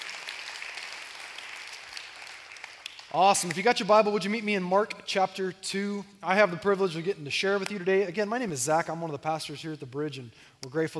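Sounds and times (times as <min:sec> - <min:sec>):
church congregation clapping to welcome guests: 0:00.0 - 0:04.4
speech: 0:03.1 - 0:10.9.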